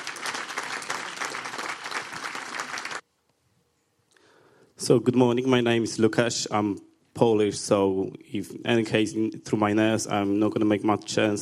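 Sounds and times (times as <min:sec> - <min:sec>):
audience applause: 0:00.0 - 0:03.0
speech: 0:04.8 - 0:11.4.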